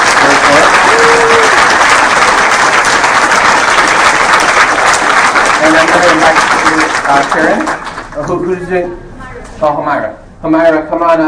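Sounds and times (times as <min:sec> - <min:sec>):
audience applause at a conference: 0:00.0 - 0:08.2
speech: 0:07.1 - 0:09.0, 0:09.6 - 0:11.2.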